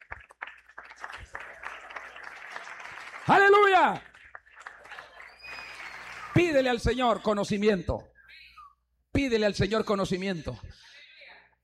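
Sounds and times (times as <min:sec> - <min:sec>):
audience applauding: 0:00.0 - 0:06.8
speech: 0:03.3 - 0:04.1, 0:06.4 - 0:08.1, 0:09.2 - 0:10.7.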